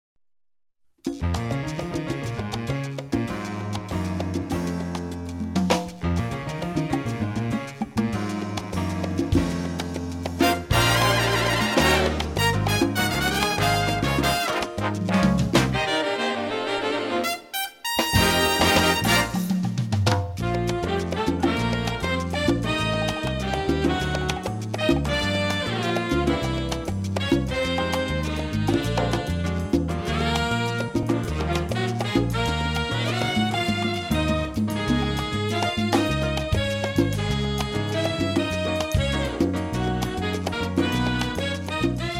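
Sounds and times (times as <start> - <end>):
jazz orchestra: 1.2 - 42.1.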